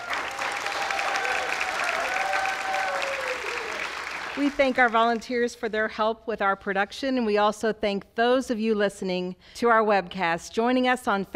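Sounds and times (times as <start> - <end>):
audience applause for guest performers at a live evening show: 0.0 - 5.2
speech: 4.4 - 11.3.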